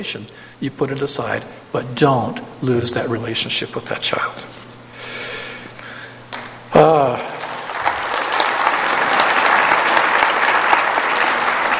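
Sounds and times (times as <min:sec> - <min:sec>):
speech: 0:00.0 - 0:04.7, 0:06.7 - 0:07.4
audience applause: 0:06.8 - 0:11.7.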